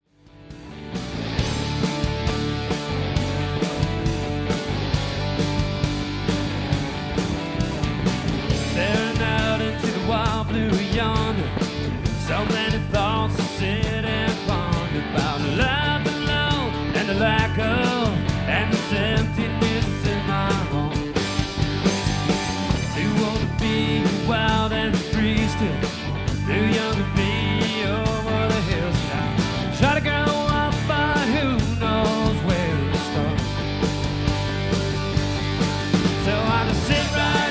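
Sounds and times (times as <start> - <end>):
tribute band playing: 0.2 - 37.4.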